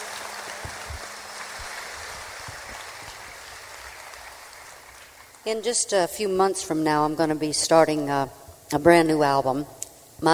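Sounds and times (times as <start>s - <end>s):
audience applause: 0.0s - 5.4s
speech: 5.4s - 10.3s.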